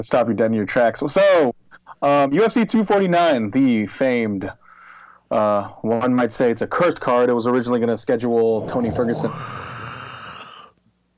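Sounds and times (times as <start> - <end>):
speech: 0.0 - 4.6, 5.3 - 9.6
person making a ghost noise: 8.5 - 10.8.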